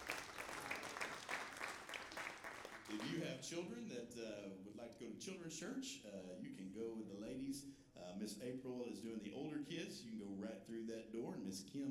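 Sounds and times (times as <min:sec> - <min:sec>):
crowd clapping: 0:00.0 - 0:03.4
speech: 0:02.9 - 0:11.8.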